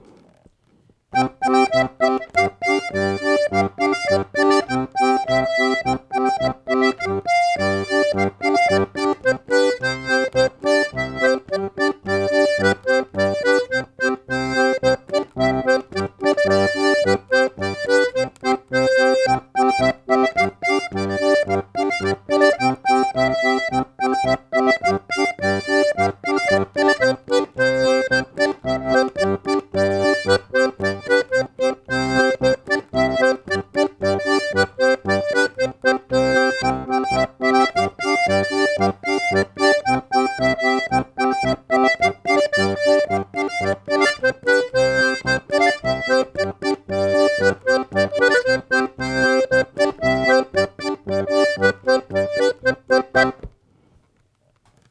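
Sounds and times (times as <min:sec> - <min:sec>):
polka music: 0:01.2 - 0:53.6.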